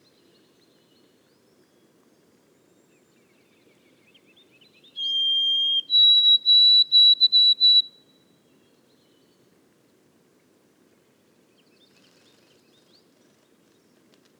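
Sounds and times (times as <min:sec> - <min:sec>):
White-throated sparrow whistled song in boreal forest: 0:04.8 - 0:07.9.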